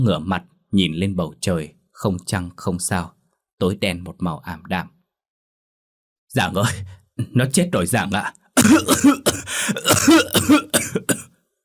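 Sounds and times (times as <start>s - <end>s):
speech: 0.0s - 5.0s, 6.3s - 11.2s
deep hacking cough from someone who has just come round after fainting: 8.6s - 11.4s.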